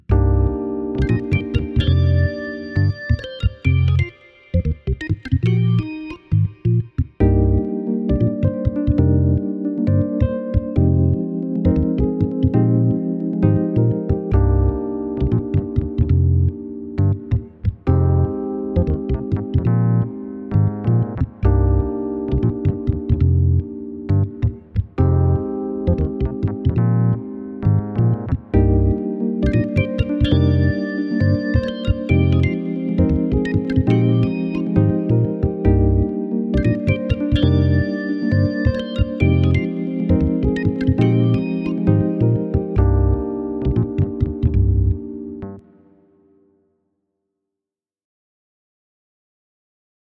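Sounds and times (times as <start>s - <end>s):
backing track: 0.1s - 45.6s.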